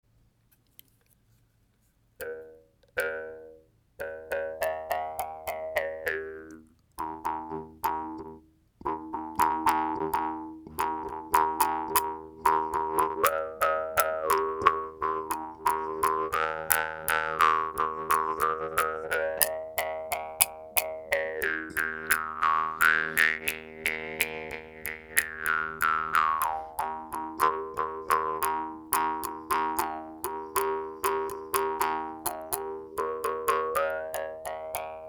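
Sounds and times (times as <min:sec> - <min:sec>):
Timor genggong jaw harp playing: 0:02.2 - 0:35.0.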